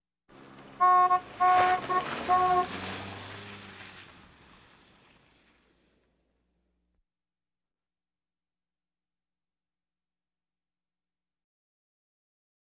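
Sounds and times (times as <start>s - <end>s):
various automobiles: 0.3s - 6.5s.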